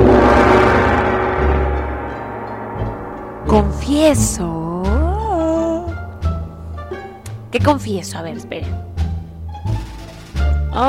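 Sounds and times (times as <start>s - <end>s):
gong being struck: 0.0s - 7.6s
speech: 3.6s - 4.6s, 7.6s - 8.9s.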